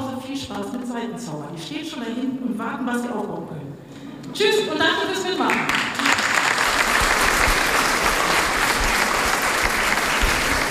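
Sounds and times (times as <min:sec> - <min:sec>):
speech: 0:00.4 - 0:05.9
audience applause for a choir: 0:05.5 - 0:10.6.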